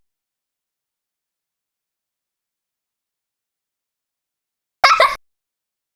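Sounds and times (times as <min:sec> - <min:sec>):
person laughing: 0:04.8 - 0:05.2.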